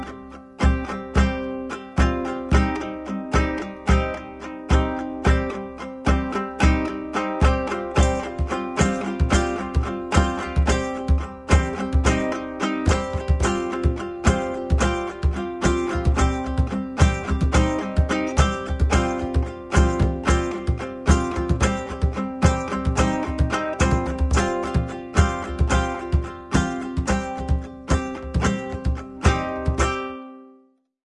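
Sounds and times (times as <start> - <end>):
bard kithara: 0.0 - 30.5
drum: 6.6 - 30.0.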